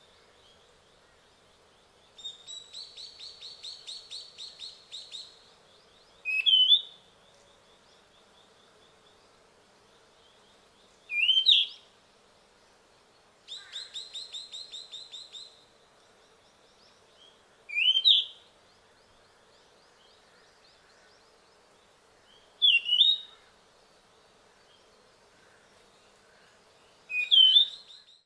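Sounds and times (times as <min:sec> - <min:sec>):
Ryukyu flycatcher calling: 0:01.9 - 0:07.1, 0:11.0 - 0:11.9, 0:13.4 - 0:15.7, 0:16.8 - 0:21.4, 0:22.2 - 0:23.6, 0:24.6 - 0:28.2.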